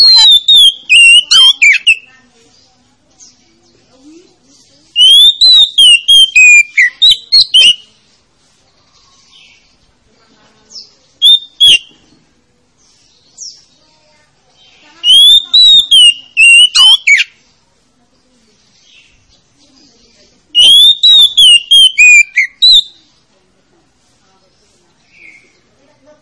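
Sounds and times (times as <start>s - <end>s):
Oriental magpie-robin song of bright whistled phrases: 0.0s - 2.1s, 4.9s - 8.0s, 10.7s - 12.2s, 14.6s - 17.5s, 18.7s - 23.1s, 25.0s - 25.7s.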